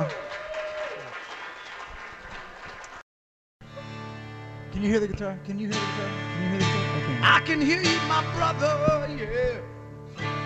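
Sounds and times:
audience applause: 0.0 - 3.0
speech: 4.8 - 10.3.

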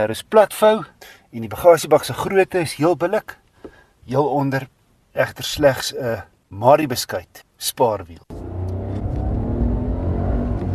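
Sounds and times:
speech: 0.0 - 3.4, 4.0 - 8.3
Renault 66 kW 900 cc three-cylinder turbo petrol engine accelerating: 8.3 - 10.7.

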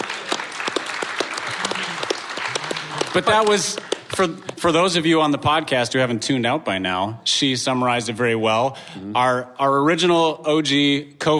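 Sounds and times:
crowd applause: 0.0 - 4.8
speech: 3.1 - 11.3.

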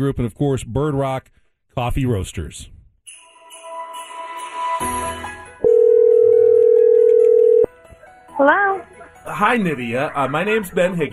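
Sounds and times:
speech: 0.0 - 2.8, 8.4 - 11.1
telephone ringing tone of outgoing call: 5.6 - 7.7
laughter: 9.0 - 11.1.

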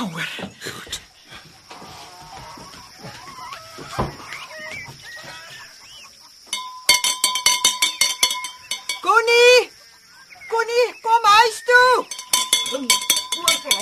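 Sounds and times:
chirping farmyard birds: 0.0 - 13.8
bell ringing: 6.5 - 9.1, 12.0 - 13.8.

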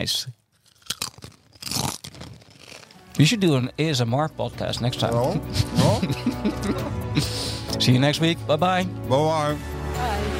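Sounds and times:
speech: 0.0 - 0.4, 3.2 - 6.4, 7.8 - 10.3
Doritos crisps being crunched and chewed: 0.5 - 3.2
laughter: 5.2 - 7.6.

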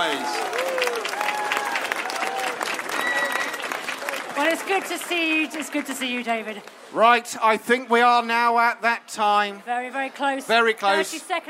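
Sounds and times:
audience applause: 0.0 - 6.2
speech: 4.6 - 11.4.

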